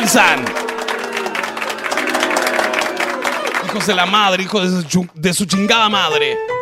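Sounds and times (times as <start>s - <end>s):
speech: 0.0s - 0.6s, 3.7s - 6.5s
crowd booing: 0.0s - 4.5s
scattered clapping: 0.0s - 5.3s.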